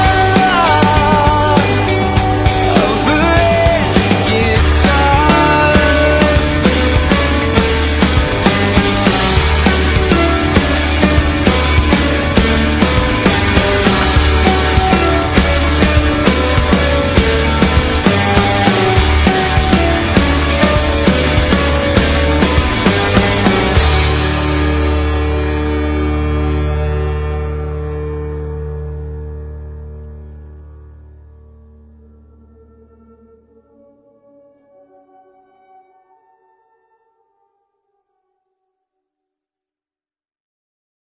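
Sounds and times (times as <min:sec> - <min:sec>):
red guitar: 0:00.0 - 0:32.8.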